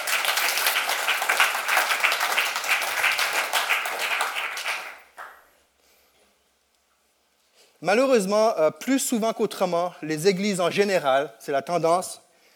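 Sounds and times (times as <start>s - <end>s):
audience applause: 0.0s - 5.4s
speech: 7.8s - 12.2s.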